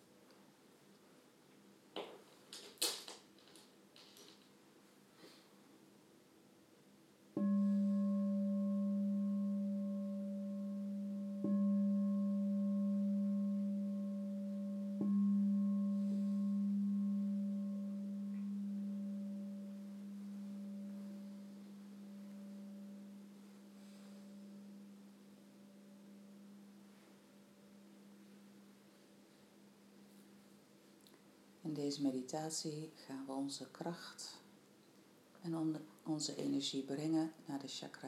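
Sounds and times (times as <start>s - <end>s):
soft clicks and rustles: 0.2s - 5.4s
meditation bell ringing: 7.4s - 30.2s
speech: 31.7s - 34.4s, 35.4s - 38.0s.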